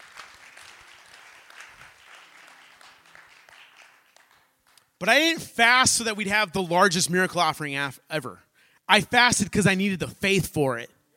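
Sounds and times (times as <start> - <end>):
audience clapping: 0.0 - 5.2
speech: 5.0 - 11.0.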